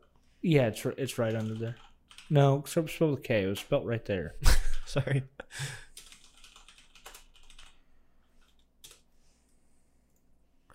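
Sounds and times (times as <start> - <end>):
speech: 0.4 - 5.8
faint typing on a computer keyboard: 1.0 - 2.5, 5.9 - 10.3.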